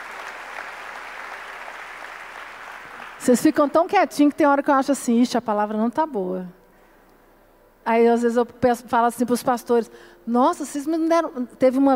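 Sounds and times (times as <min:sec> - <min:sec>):
audience applause: 0:00.0 - 0:03.3
speech: 0:03.2 - 0:06.6, 0:07.9 - 0:11.9.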